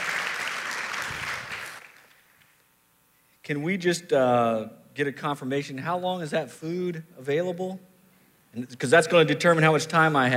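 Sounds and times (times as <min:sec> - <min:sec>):
audience applause welcoming a guest speaker to the stage: 0:00.0 - 0:02.2
speech: 0:03.5 - 0:07.9, 0:08.5 - 0:10.3.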